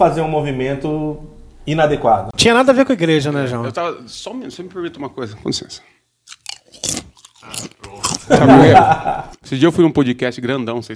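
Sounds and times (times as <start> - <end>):
speech: 0.0 - 6.0, 6.8 - 10.9
chewing gummy candy: 6.3 - 8.6
laughter: 8.0 - 9.4.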